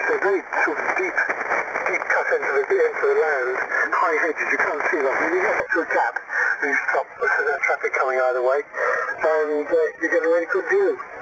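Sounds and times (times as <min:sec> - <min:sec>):
QRN radio static noise: 0:00.0 - 0:11.2.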